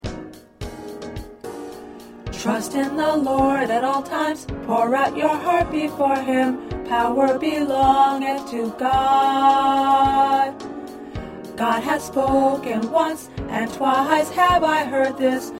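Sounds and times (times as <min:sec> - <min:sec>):
tenor singing: 0:02.4 - 0:10.6, 0:11.6 - 0:15.5.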